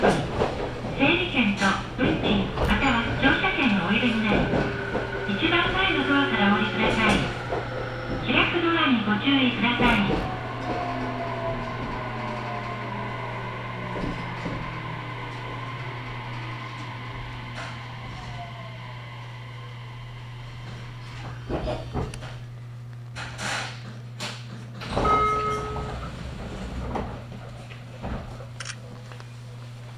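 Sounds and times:
voices on the Sasebo Line train: 0.0 - 21.6
Sasebo Line train steady low hum: 0.0 - 29.9.

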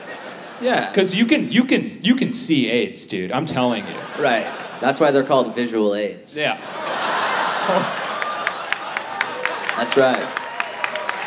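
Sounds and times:
laughter: 0.0 - 1.0, 3.5 - 5.2, 6.5 - 10.3
speech: 0.6 - 6.9, 7.7 - 8.0, 9.8 - 10.4
live audience applause: 7.1 - 11.2.

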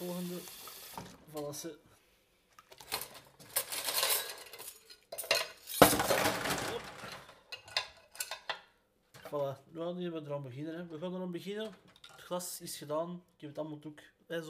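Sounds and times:
running water in a sink: 0.0 - 1.5
speech: 1.5 - 1.9, 9.3 - 14.4
metal cutlery clinking, washed by hand in a sink: 2.7 - 6.3, 7.5 - 8.6.

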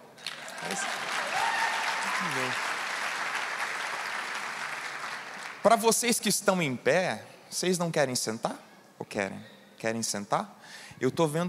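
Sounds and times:
audience applause: 0.2 - 5.7
speech: 0.6 - 1.1, 2.2 - 2.7, 5.6 - 11.4.

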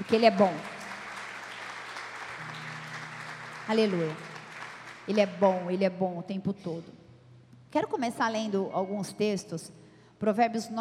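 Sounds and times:
audience applause: 0.0 - 5.1
speech: 0.1 - 0.7, 3.7 - 4.3, 5.1 - 7.0, 7.7 - 10.7.

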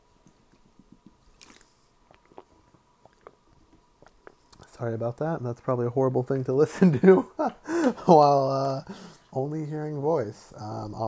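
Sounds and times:
person sipping water: 0.3 - 4.8
speech: 4.8 - 11.0.

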